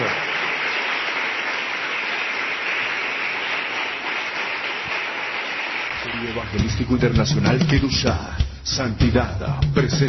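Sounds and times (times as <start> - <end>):
crowd applause: 0.0 - 7.0
speech: 6.2 - 10.0.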